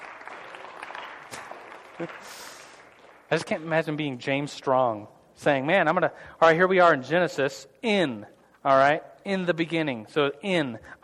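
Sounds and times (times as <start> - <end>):
audience applause: 0.0 - 3.5
speech: 2.0 - 2.5, 3.3 - 11.0.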